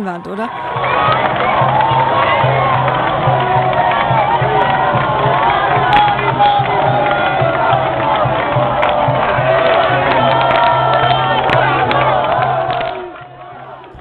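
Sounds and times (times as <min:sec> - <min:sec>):
speech: 0:00.0 - 0:01.8
large football crowd cheering and roaring after a goal: 0:00.0 - 0:13.9.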